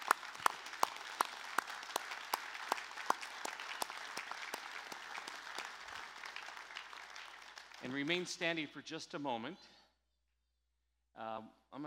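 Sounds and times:
audience applause: 0.0s - 8.3s
speech: 7.9s - 9.8s, 11.2s - 11.8s.

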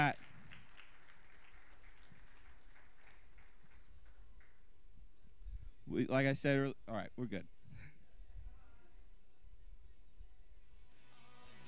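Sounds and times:
audience applause: 0.0s - 4.7s
speech: 6.0s - 7.9s.

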